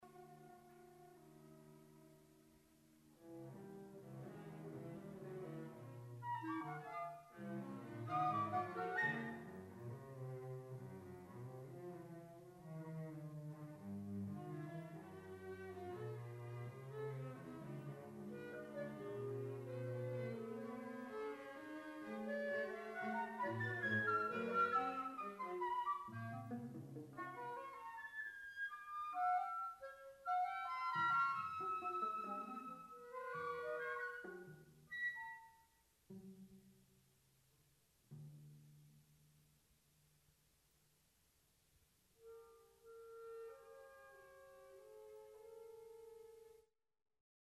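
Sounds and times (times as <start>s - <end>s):
quartet music: 0.0s - 35.4s.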